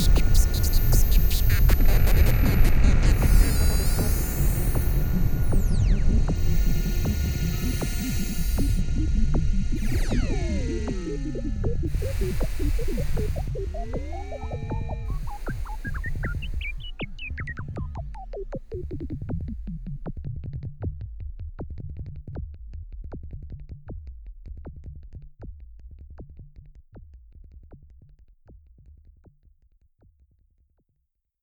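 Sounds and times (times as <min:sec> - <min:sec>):
SUPER6 synthesizer effects: 0:00.0 - 0:19.7.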